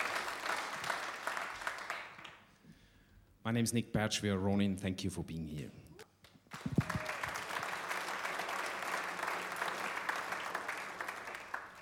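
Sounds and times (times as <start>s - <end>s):
audience applause: 0.0s - 2.4s, 6.5s - 11.8s
speech: 3.4s - 5.9s.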